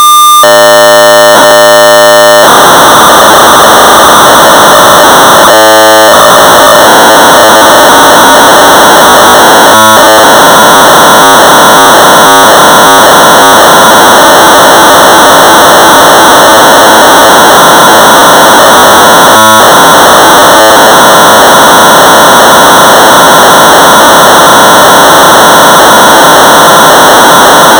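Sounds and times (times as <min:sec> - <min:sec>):
1200 baud modem data tones: 0:00.2 - 0:27.7.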